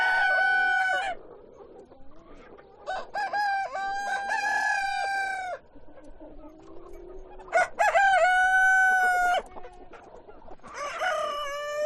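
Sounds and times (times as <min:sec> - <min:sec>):
chickens clucking at a chicken farm: 0:00.0 - 0:11.8.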